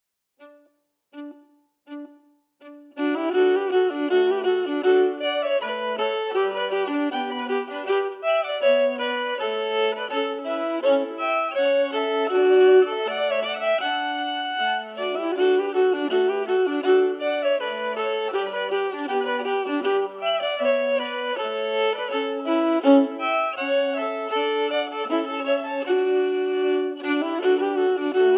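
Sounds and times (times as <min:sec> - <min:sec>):
emphasized musical harmonies: 0:01.2 - 0:28.3.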